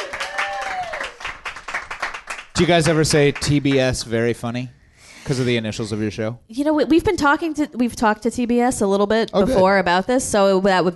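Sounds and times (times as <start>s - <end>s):
audience applause: 0.0s - 4.0s
speech: 2.6s - 10.9s.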